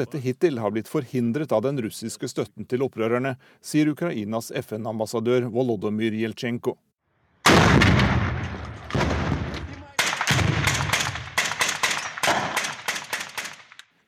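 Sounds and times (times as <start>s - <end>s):
speech: 0.0s - 6.9s
artillery fire: 7.4s - 13.8s
gunfire: 7.4s - 13.8s.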